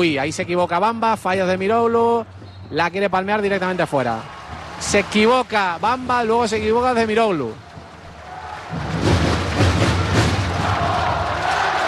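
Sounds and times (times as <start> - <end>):
speech: 0.0 - 7.6
basketball arena crowd applauding: 3.4 - 11.8.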